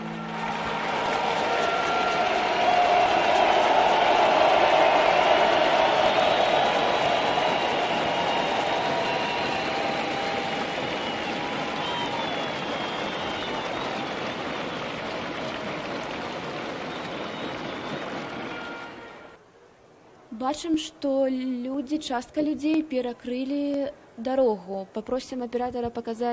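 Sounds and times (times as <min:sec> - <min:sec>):
crowd clapping hands outdoors: 0:00.0 - 0:19.4
speech: 0:20.5 - 0:26.3.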